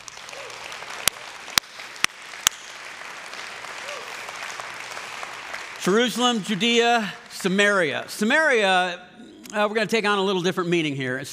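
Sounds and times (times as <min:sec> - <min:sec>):
audience clapping: 0:00.0 - 0:08.7
speech: 0:05.8 - 0:11.3.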